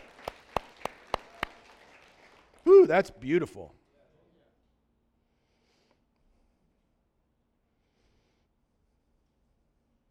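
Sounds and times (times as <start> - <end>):
audience applauding: 0.0 - 3.1
speech: 2.8 - 3.8.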